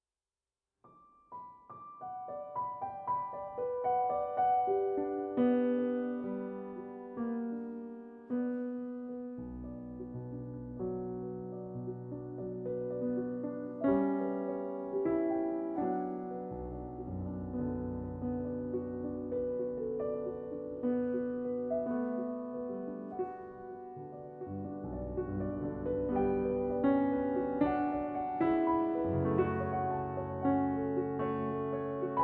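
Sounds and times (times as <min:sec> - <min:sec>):
mournful piano piece: 0:00.9 - 0:32.2.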